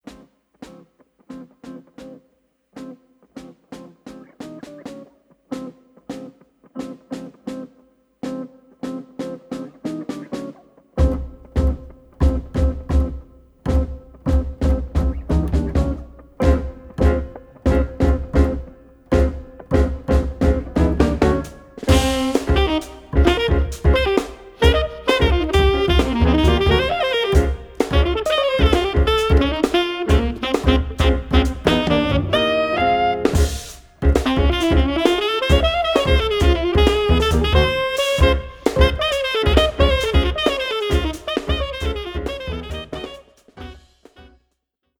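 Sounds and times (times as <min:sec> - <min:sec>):
musical trio: 0:09.9 - 0:44.4.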